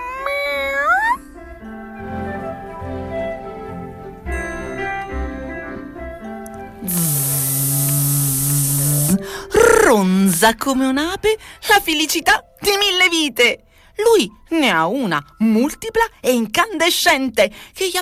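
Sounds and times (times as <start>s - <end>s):
cat meowing and yowling: 0.0s - 1.2s
loud hissing rush: 6.8s - 10.0s
speech: 9.5s - 18.0s.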